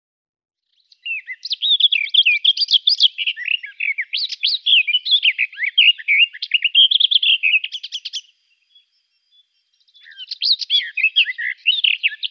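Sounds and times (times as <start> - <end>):
garden warbler song: 0.6 - 12.2.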